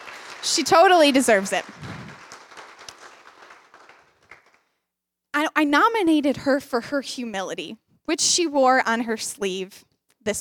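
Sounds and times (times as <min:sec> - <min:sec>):
audience clapping: 0:00.0 - 0:04.8
speech: 0:00.4 - 0:01.9, 0:05.6 - 0:10.4.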